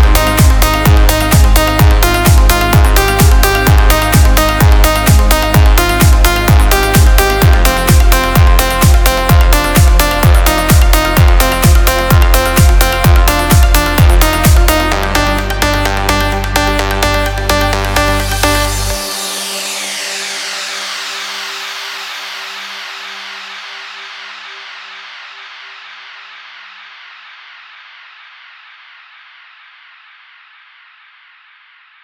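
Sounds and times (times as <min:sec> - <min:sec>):
instrumental music: 0:00.0 - 0:20.4.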